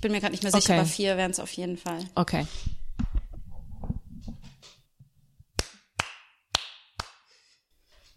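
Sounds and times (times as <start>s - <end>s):
speech: 0.0s - 2.8s
hand clapping: 5.5s - 7.4s.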